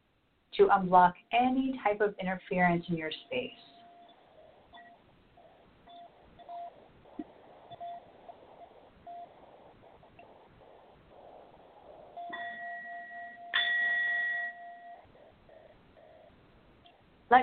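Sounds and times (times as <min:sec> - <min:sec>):
speech: 0:00.6 - 0:03.7
brass singing bowl ringing: 0:12.2 - 0:15.6.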